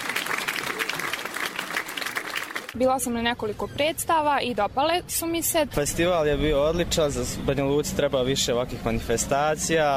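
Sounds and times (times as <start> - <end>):
thunderous audience applause at the National Theatre of Republika Srpska in Banja Luka: 0.0 - 2.8
speech: 2.8 - 9.9.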